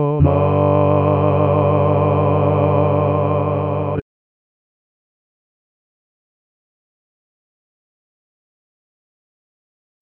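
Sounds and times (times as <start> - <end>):
bass solo: 0.2 - 4.0.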